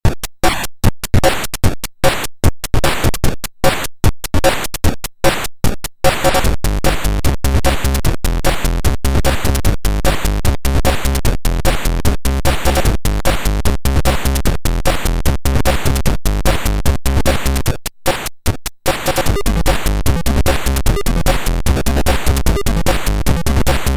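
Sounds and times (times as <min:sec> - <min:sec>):
music kit: 0:00.0 - 0:23.9.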